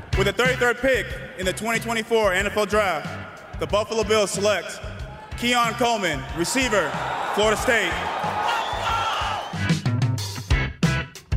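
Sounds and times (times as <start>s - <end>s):
speech: 0.2s - 8.3s
crowd screaming let's go: 5.0s - 9.8s.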